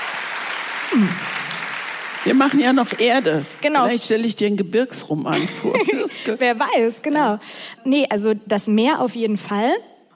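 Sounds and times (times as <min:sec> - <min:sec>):
audience clapping: 0:00.0 - 0:04.4
speech: 0:00.9 - 0:01.3, 0:02.2 - 0:09.9.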